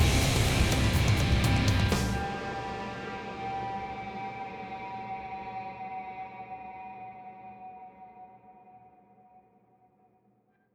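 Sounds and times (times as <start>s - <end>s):
125 bpm music outro: 0.0s - 2.5s.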